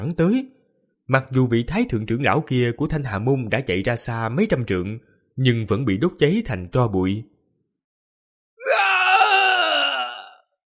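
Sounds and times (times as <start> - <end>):
speech: 0.0 - 7.3
agonized wailing scream: 8.6 - 10.5.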